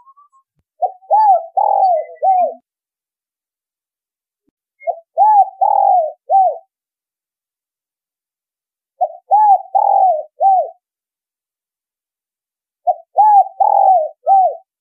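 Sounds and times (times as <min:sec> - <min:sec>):
spotted dove cooing: 0:00.8 - 0:02.6, 0:04.8 - 0:06.7, 0:09.0 - 0:10.8, 0:12.8 - 0:14.7.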